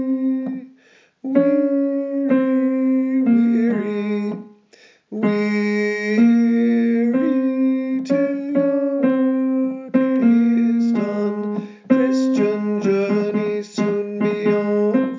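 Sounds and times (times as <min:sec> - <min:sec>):
tenor voice singing a spiritual: 0:00.0 - 0:04.5, 0:05.1 - 0:15.1.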